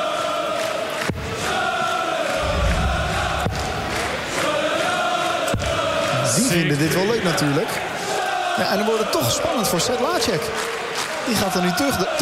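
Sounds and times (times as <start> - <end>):
crowd cheering and shouting: 0.0 - 12.2
low rumble: 2.4 - 4.5
speech: 6.5 - 7.9, 8.6 - 12.2.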